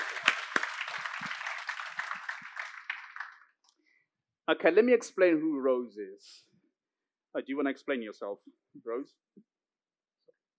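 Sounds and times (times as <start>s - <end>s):
audience applause: 0.0s - 3.5s
speech: 4.5s - 6.5s, 7.3s - 9.5s.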